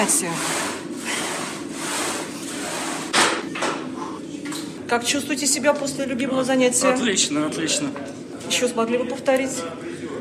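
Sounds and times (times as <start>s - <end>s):
speech: 0.0s - 0.6s, 4.9s - 10.1s
bench press exercise on gym machine: 0.0s - 3.9s.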